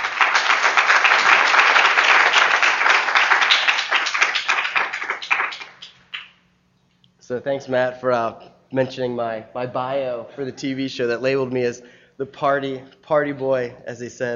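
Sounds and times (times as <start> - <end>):
audience round of applause: 0.0 - 6.3
speech: 7.3 - 14.3.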